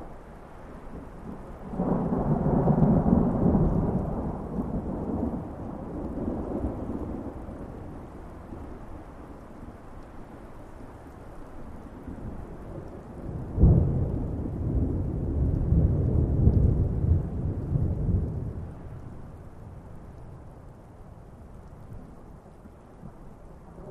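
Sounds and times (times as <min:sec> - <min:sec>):
distant thunder: 0:01.3 - 0:08.0, 0:12.2 - 0:20.1.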